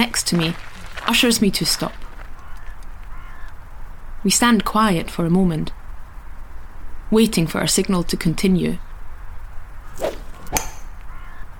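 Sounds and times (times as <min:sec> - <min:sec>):
speech: 0:00.0 - 0:02.0, 0:04.2 - 0:05.8, 0:07.1 - 0:08.8
golf club striking a ball off the tee near St Andrews in Fife: 0:10.0 - 0:11.0.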